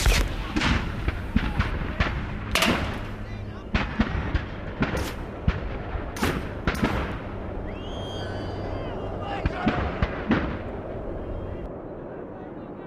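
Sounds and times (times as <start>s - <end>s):
outdoor battle ambience: 0.0s - 12.8s.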